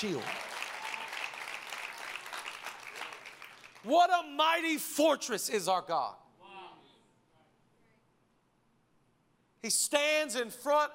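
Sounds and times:
speech: 0.0s - 0.4s, 3.8s - 6.2s, 9.6s - 10.9s
audience clapping: 0.0s - 4.0s.

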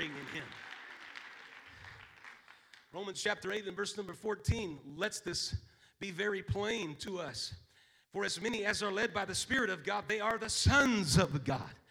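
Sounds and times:
speech: 0.0s - 0.7s, 2.9s - 11.8s
audience clapping hands: 0.0s - 3.0s.

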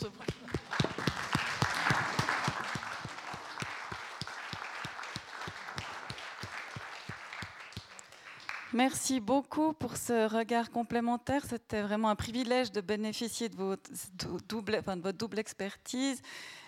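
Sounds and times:
audience applause: 0.0s - 8.8s
speech: 8.8s - 16.6s.

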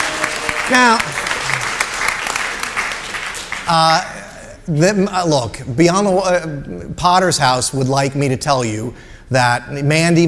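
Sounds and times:
audience applause: 0.0s - 4.1s
speech: 0.7s - 1.2s, 3.7s - 10.2s.

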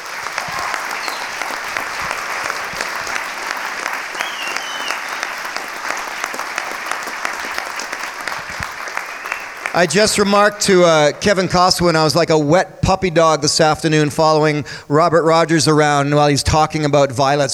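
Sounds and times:
audience applause: 0.0s - 11.6s
speech: 9.8s - 17.5s.

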